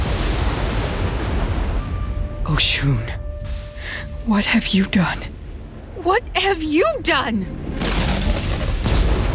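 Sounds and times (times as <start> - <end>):
thunder crack from a lightning strike: 0.0 - 3.8, 7.6 - 9.3
speech: 2.5 - 3.2, 4.2 - 5.4, 6.0 - 7.6.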